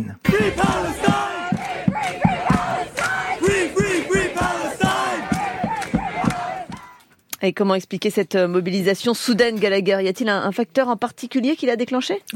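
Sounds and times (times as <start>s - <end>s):
speech: 0.0s - 1.3s, 7.4s - 12.3s
large crowd chanting a slogan in unison: 0.2s - 7.0s
shouts and cheers: 0.3s - 7.0s.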